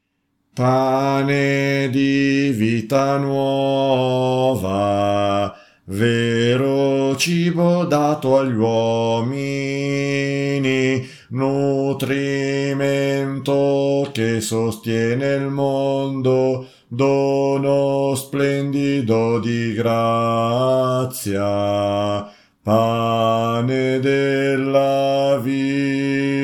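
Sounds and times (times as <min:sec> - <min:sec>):
contralto voices singing: 0:00.6 - 0:26.4.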